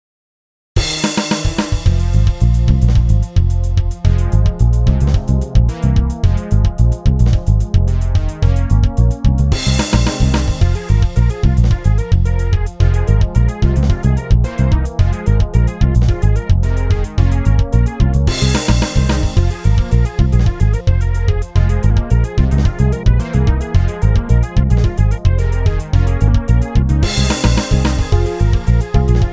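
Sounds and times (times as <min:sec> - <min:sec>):
game music: 0:00.9 - 0:29.3.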